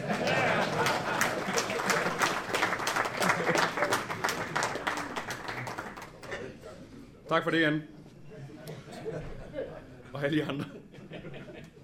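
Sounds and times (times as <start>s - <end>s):
audience clapping: 0.0s - 6.6s
laughter: 0.0s - 6.9s, 8.2s - 11.8s
speech: 7.3s - 8.0s, 10.2s - 10.7s.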